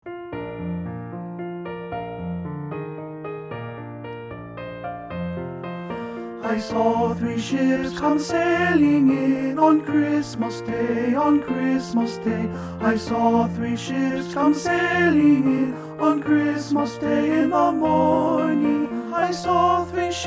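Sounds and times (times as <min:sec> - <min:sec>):
tenor bass choir singing a holiday carol: 0:06.4 - 0:20.2.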